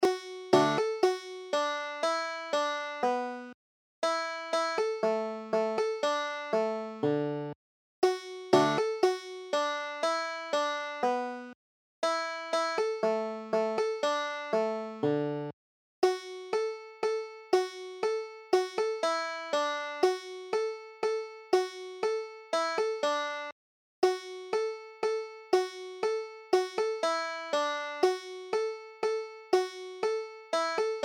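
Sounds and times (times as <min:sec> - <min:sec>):
banjo: 0:00.0 - 0:31.0.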